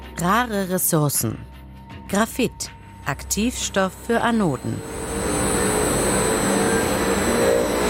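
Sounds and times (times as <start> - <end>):
speech: 0.2 - 1.5, 2.1 - 5.1
recycling plant machinery roaring: 4.5 - 7.8
faint high whining: 4.8 - 7.8.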